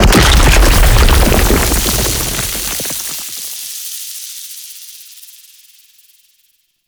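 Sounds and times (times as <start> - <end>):
octopede creature death dissolve: 0.0 - 3.4.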